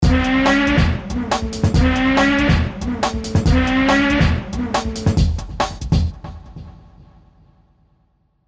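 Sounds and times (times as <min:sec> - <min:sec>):
music loop: 0:00.0 - 0:06.3.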